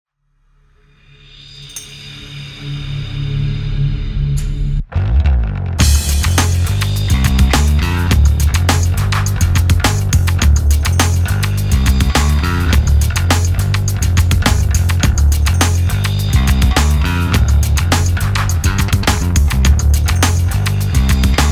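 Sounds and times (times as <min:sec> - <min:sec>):
bass: 0:00.6 - 0:21.5.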